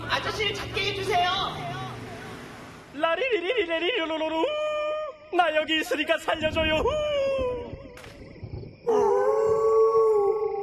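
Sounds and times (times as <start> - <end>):
speech: 0.2 - 1.7, 3.0 - 4.6, 5.3 - 7.1, 8.9 - 9.2
animals howling: 8.8 - 10.6.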